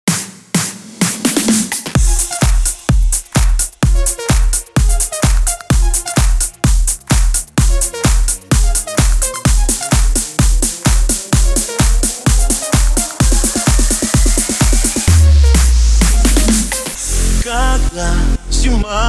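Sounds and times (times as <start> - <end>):
slap house remix: 0.0 - 18.9.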